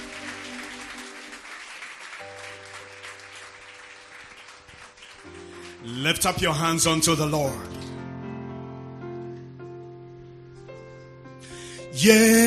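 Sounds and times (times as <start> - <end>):
audience hand clapping: 0.0 - 7.3
speech: 5.8 - 7.8, 12.0 - 12.4.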